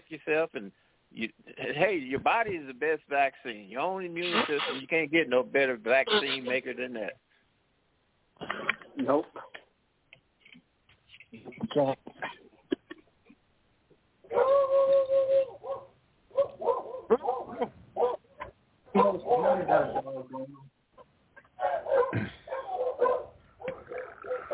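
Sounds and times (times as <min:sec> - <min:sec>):
speech: 0:00.1 - 0:07.2, 0:08.5 - 0:09.6, 0:11.3 - 0:12.4, 0:18.9 - 0:20.7
dogs barking: 0:14.2 - 0:20.2, 0:21.6 - 0:24.5.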